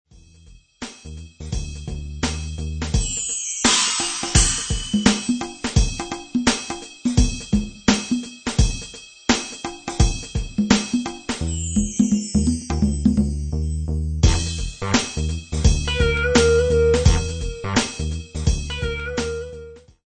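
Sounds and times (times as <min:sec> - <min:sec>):
drums: 0:00.1 - 0:13.6, 0:14.2 - 0:20.0.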